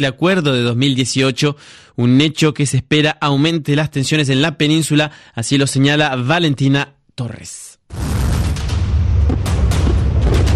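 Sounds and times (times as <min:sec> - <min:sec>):
speech: 0:00.0 - 0:08.1
North Korean artillery shell fired toward South Korea: 0:07.9 - 0:10.5.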